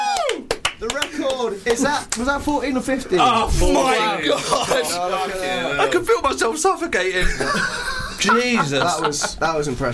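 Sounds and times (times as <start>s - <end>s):
scattered hand claps: 0.0s - 2.3s
speech: 1.4s - 9.9s
laughter: 4.2s - 5.3s, 7.2s - 9.9s.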